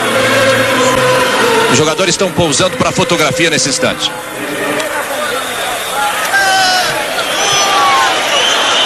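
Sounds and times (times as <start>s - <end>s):
large stadium crowd booing: 0.0s - 8.8s
speech: 1.7s - 4.8s
scattered whistles: 6.8s - 8.8s.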